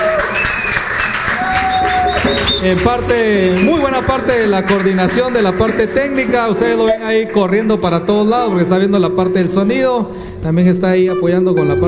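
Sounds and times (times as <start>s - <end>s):
audience applause at a live event: 0.0s - 9.1s
speech: 2.6s - 11.8s.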